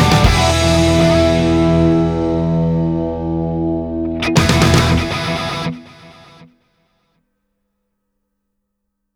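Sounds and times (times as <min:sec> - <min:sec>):
theatrical rock music: 0:00.0 - 0:06.4.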